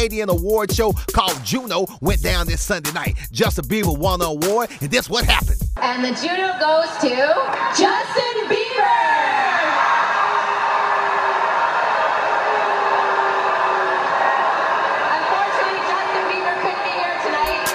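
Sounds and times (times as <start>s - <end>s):
speech: 0.0s - 9.5s
audience booing at award show: 7.5s - 17.7s.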